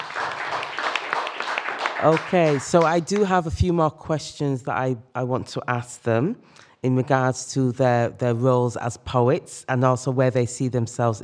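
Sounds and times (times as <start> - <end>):
audience applause: 0.0 - 3.3
speech: 2.0 - 11.2.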